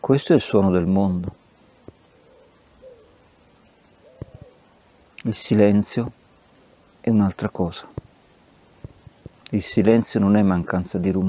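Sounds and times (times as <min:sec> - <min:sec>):
speech: 0:00.0 - 0:01.4, 0:05.3 - 0:06.2, 0:07.0 - 0:08.0, 0:09.5 - 0:11.2
soft low bird hooting calls: 0:01.6 - 0:04.8.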